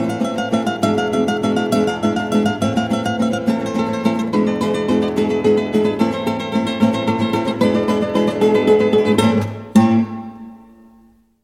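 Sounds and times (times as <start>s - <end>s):
guitar: 0.0s - 11.4s.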